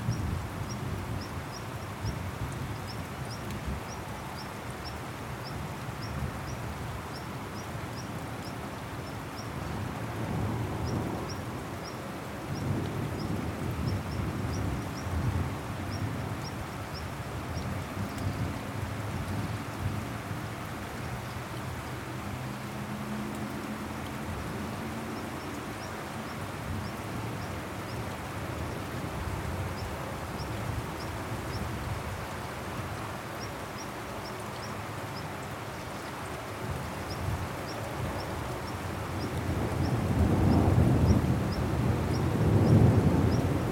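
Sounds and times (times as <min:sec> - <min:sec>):
heavy rain pouring in a thunderstorm: 0:00.0 - 0:43.7
low rumbling rolls of thunder: 0:39.3 - 0:43.7.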